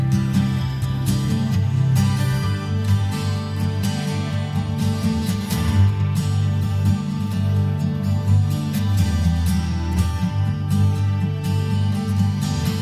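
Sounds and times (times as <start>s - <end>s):
folk acoustic guitar melody in a mountain wooden cabin: 0.0s - 12.8s.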